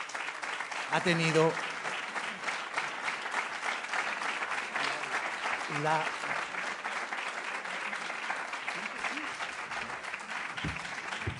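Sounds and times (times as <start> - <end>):
audience applause for a composer: 0.0 - 11.3
speech: 0.9 - 1.7, 5.7 - 6.3.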